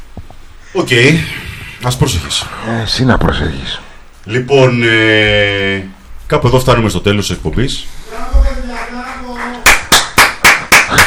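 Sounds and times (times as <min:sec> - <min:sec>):
speech: 0:00.7 - 0:08.4
hand claps: 0:08.7 - 0:11.0.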